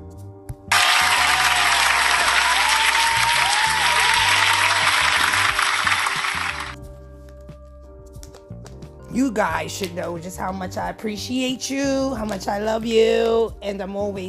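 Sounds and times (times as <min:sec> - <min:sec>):
audience applause: 0:00.7 - 0:06.8
speech: 0:09.2 - 0:14.2.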